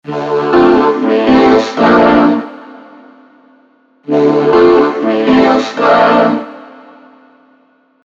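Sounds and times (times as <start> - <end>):
vocoder voice: 0.0 - 3.2, 4.0 - 7.2.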